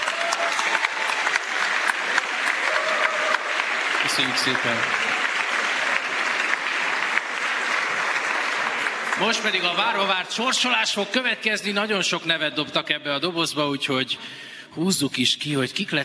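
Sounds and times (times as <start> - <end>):
audience applause: 0.0 - 11.2
speech: 4.0 - 5.2, 9.2 - 16.0.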